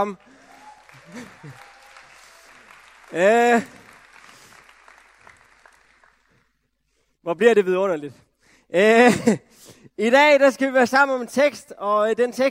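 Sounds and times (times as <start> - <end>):
speech: 0.0 - 0.4, 1.1 - 1.7, 3.1 - 3.8, 7.2 - 12.4
audience applause: 0.0 - 6.5.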